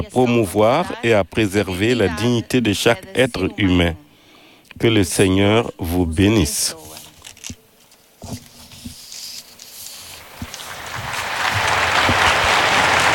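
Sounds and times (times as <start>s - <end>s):
speech: 0.0s - 4.0s, 4.8s - 7.6s, 8.2s - 8.4s
pilgrims applauding in Saint Peter's Square: 10.7s - 13.1s.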